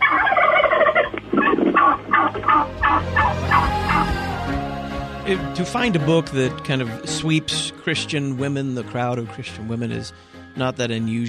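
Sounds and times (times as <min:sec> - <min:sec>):
turkey gobbling: 0:00.0 - 0:04.4
speech: 0:05.3 - 0:11.2.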